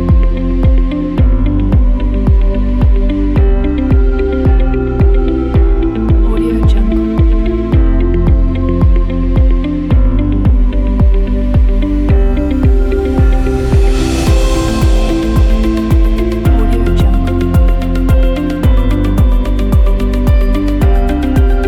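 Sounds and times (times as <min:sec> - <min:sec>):
summer ambient upbeat pop music: 0:00.0 - 0:21.6.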